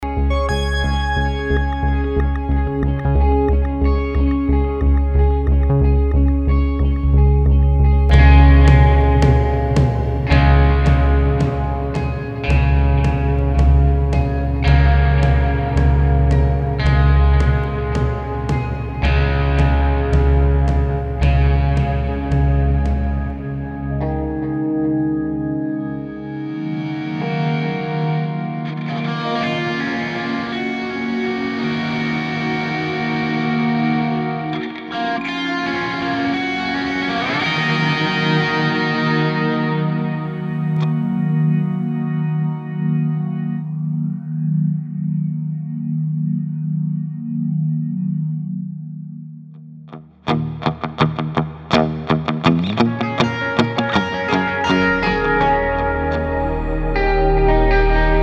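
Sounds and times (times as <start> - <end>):
electro acoustic pop suspense music: 0.0 - 58.2.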